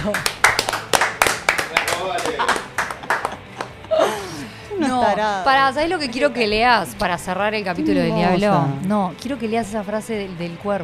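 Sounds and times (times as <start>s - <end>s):
speech: 0.0s - 0.4s, 5.0s - 10.8s
applause, hand clapping: 0.0s - 3.9s
laughter: 2.0s - 5.5s.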